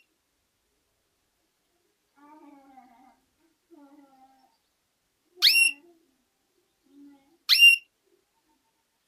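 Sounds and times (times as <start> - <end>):
female canary calls: 5.4 - 5.9, 7.5 - 9.0.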